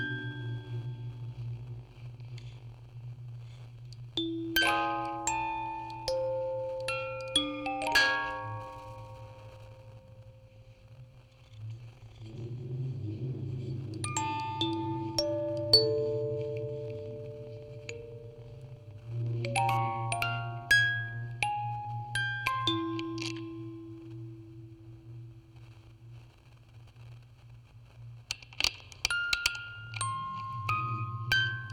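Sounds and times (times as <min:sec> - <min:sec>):
music box quartet on tape with vocoder: 0:00.0 - 0:01.3, 0:04.2 - 0:10.8, 0:12.2 - 0:25.3, 0:28.6 - 0:31.7.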